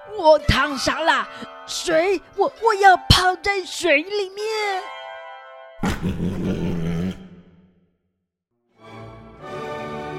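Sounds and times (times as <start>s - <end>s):
speech: 0.1s - 5.0s
tiger roaring in pain: 5.8s - 7.4s.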